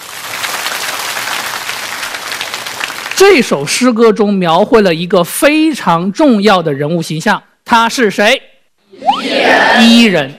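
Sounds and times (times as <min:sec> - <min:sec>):
classroom of students applauding: 0:00.0 - 0:03.6
speech: 0:03.2 - 0:10.3.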